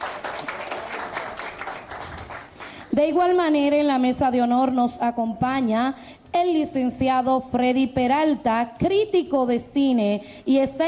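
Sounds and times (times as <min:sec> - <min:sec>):
audience applause for a guest at a formal event: 0:00.0 - 0:02.9
speech: 0:03.0 - 0:10.8.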